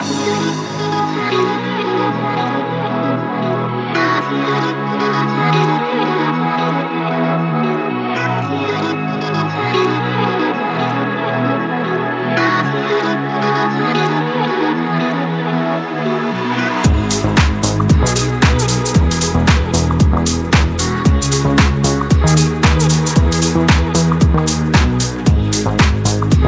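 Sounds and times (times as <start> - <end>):
electro dance music: 0.0 - 26.4.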